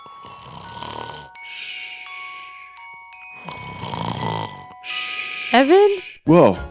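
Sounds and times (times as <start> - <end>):
person imitating snoring: 0.0 - 1.3, 3.4 - 6.0
speech: 5.5 - 6.6.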